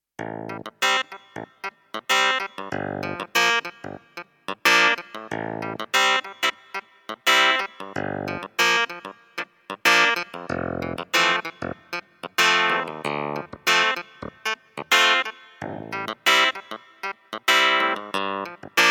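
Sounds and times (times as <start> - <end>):
SP170S clavinet: 0.2 - 18.8.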